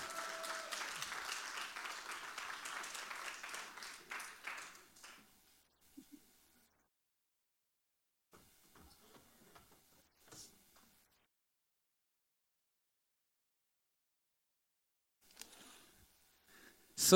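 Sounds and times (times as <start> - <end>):
audience applause: 0.0 - 5.3.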